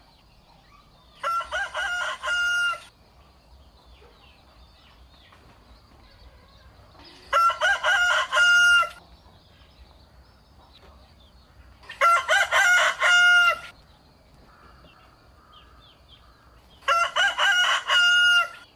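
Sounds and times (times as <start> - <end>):
rooster crowing: 1.2 - 2.9, 7.3 - 9.0, 11.9 - 13.7, 16.8 - 18.7.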